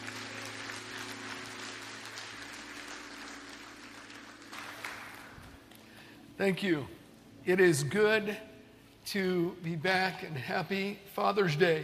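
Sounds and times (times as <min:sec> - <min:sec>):
church audience applause welcoming a pastor: 0:00.0 - 0:06.0
speech: 0:06.4 - 0:11.8.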